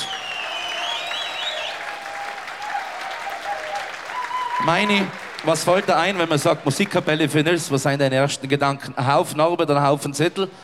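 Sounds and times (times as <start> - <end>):
audience applause at festival: 0.0 - 7.7
speech: 4.6 - 10.6.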